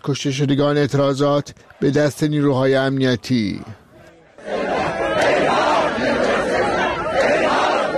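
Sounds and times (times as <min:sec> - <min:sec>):
speech: 0:00.0 - 0:03.8
large crowd shouting and chanting at a funeral procession in Iran: 0:03.4 - 0:07.9.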